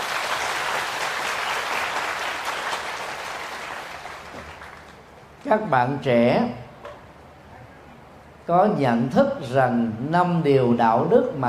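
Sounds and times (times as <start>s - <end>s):
big round of applause from a crowd: 0.0s - 5.1s
speech: 5.4s - 6.6s, 8.5s - 11.4s.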